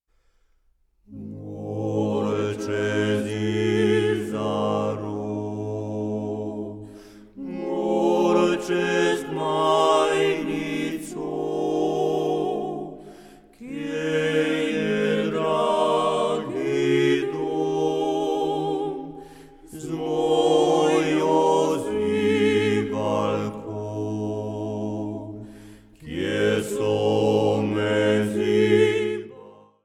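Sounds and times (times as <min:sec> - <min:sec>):
a cappella singing: 0:01.1 - 0:29.8.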